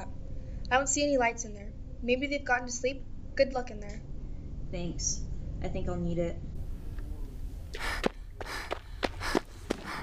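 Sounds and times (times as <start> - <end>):
speech: 0.7 - 4.1, 4.7 - 6.5
heavy breathing while rushing: 7.6 - 10.0.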